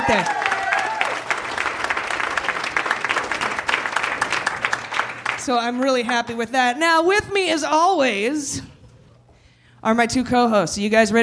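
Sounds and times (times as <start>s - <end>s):
cheers: 0.0s - 2.5s
crowd applause: 0.0s - 5.9s
speech: 0.1s - 0.5s, 5.5s - 8.7s, 9.8s - 11.2s.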